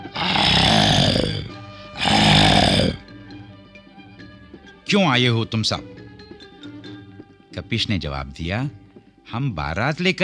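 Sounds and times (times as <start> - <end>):
tiger growling: 0.0 - 3.3
speech: 4.9 - 6.0, 7.6 - 10.2.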